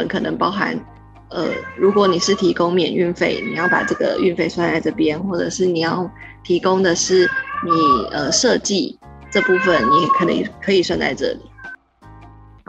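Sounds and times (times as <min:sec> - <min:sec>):
speech: 0:00.0 - 0:11.5
cat meowing: 0:01.3 - 0:04.3, 0:07.0 - 0:08.4, 0:09.2 - 0:10.5, 0:11.3 - 0:11.8.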